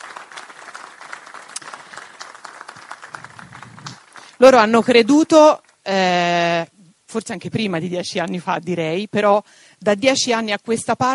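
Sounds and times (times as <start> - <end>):
crowd applauding: 0.0 - 4.8
speech: 4.4 - 11.1.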